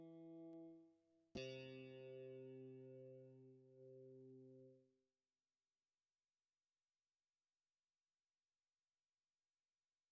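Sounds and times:
electric guitar: 1.4s - 4.8s.

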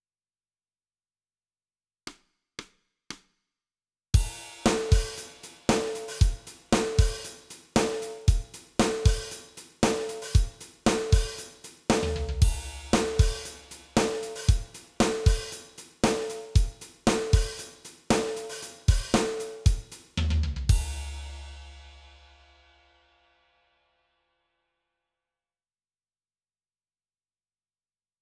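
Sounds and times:
drums: 4.2s - 22.9s.

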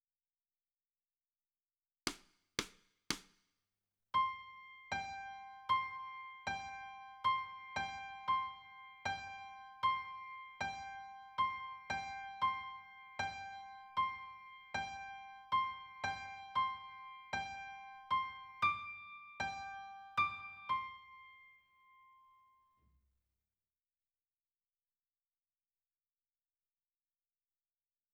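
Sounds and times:
piano: 4.2s - 22.6s.

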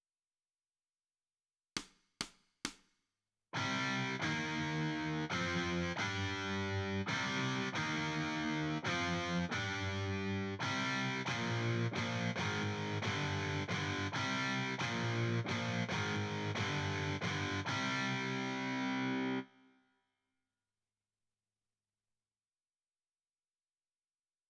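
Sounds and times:
guitar: 3.6s - 19.7s.

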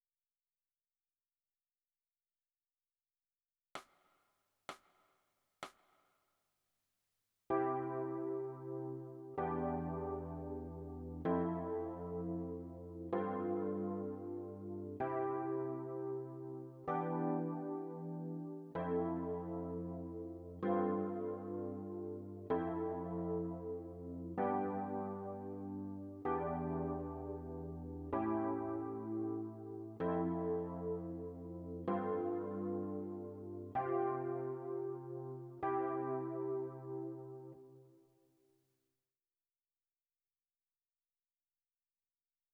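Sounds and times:
electric piano: 7.5s - 37.8s.

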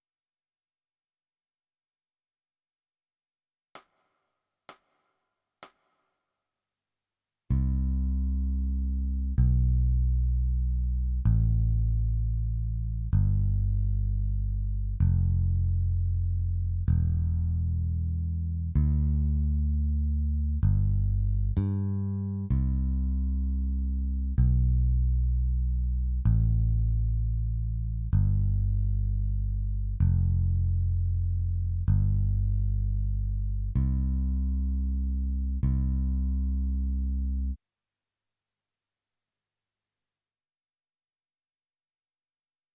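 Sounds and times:
bass: 7.5s - 37.6s.

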